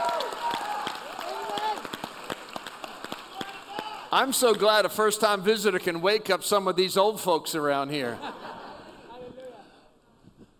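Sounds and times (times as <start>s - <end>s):
audience clapping: 0.0s - 5.1s
speech: 4.1s - 8.4s.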